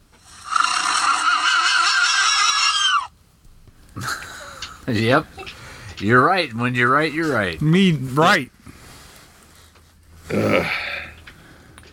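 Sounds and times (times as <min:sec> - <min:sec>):
loud high horse whinny: 0:00.3 - 0:03.1
speech: 0:04.9 - 0:08.6.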